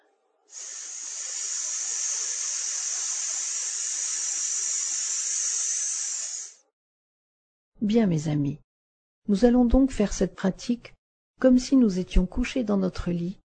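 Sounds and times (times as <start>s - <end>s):
voice hissing a long sss through clenched teeth: 0.5s - 6.6s
speech: 7.8s - 8.6s, 9.3s - 13.4s.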